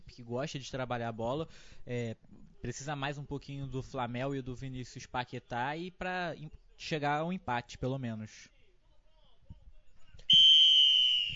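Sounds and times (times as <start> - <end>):
speech: 0.2 - 8.6
referee's whistle starting the second half of a football match: 10.3 - 11.3.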